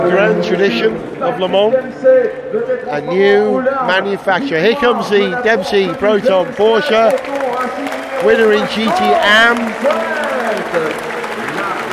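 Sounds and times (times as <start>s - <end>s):
speech: 0.0s - 11.1s
crowd cheering and applauding: 4.4s - 11.9s.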